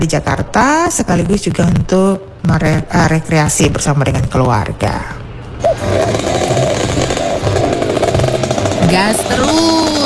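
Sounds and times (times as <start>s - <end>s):
speech: 0.0s - 6.5s, 8.9s - 9.9s
rare old motor vehicle engine revving: 5.6s - 10.0s.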